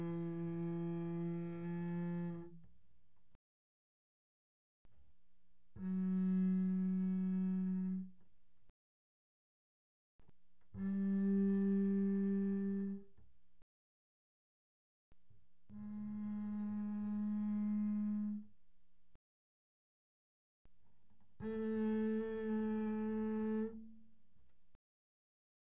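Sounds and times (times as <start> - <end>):
double bass bowed pianissimo on the A string: 0.0 - 2.8, 5.7 - 8.3, 10.7 - 13.2, 15.6 - 18.6, 21.3 - 24.2.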